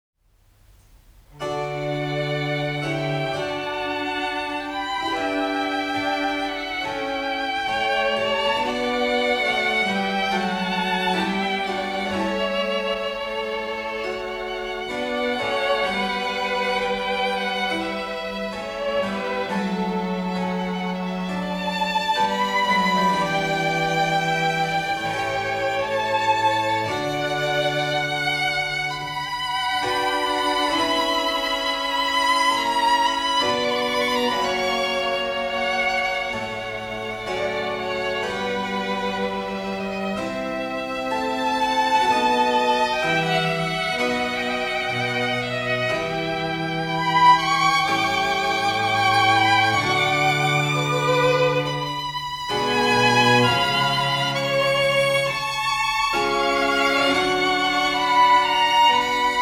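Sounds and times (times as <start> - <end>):
sonata for two violins and continuo: 0.6 - 59.3.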